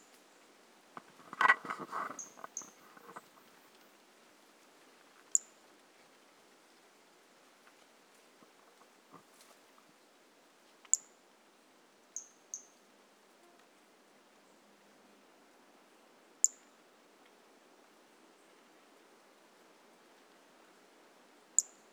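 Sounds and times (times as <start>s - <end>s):
hiss: 0.0s - 21.9s
pumpkin toadlet calling: 2.0s - 3.2s.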